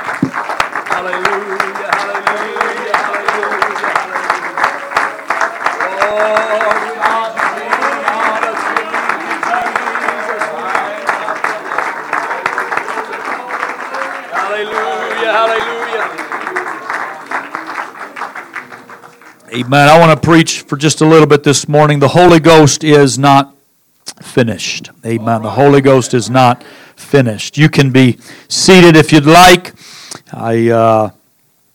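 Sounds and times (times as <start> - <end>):
audience clapping hands in praise: 0.0 - 20.4
raised voices calling out and cheering: 0.9 - 20.0
speech: 1.0 - 4.3, 6.0 - 7.2, 19.6 - 23.6, 24.4 - 29.8, 30.4 - 31.2.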